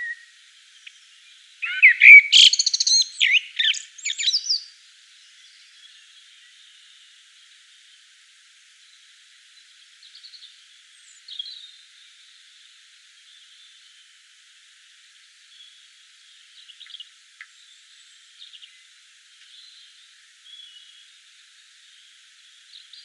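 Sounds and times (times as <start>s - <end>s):
common blackbird singing in Provence at dusk: 0.0s - 6.8s, 10.0s - 11.8s, 16.6s - 18.8s, 19.4s - 21.1s.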